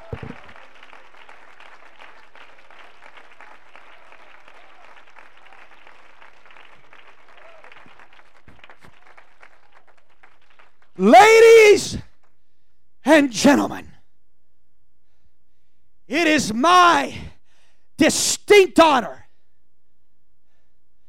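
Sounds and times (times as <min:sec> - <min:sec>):
audience clapping: 0:00.0 - 0:11.5
speech: 0:11.0 - 0:12.0, 0:13.1 - 0:13.9, 0:16.2 - 0:17.2, 0:18.0 - 0:19.2.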